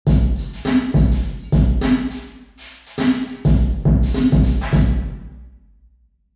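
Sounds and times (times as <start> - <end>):
drum: 0.0 - 5.4.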